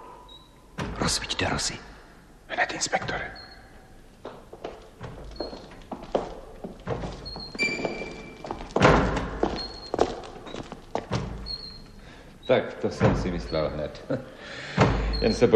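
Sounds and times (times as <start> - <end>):
door creaking: 0.3 - 1.4, 2.9 - 15.5
speech: 1.1 - 1.9, 2.6 - 3.5, 12.5 - 15.5
door banging open and shut in wind: 4.9 - 10.4, 11.0 - 11.8, 12.9 - 13.8, 14.7 - 15.5.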